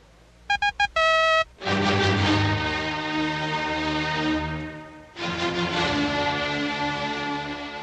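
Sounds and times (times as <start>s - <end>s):
Morse code letter V time signal beeps: 0.5s - 1.5s
loud full orchestral music: 1.6s - 7.8s.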